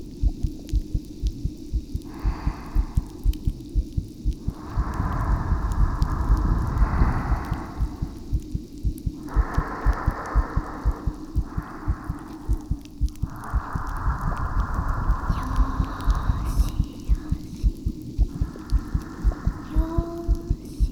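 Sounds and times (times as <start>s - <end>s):
carbonated drink fizzing: 0.0s - 20.8s
heartbeat: 0.0s - 20.8s
person whispering: 4.4s - 20.8s.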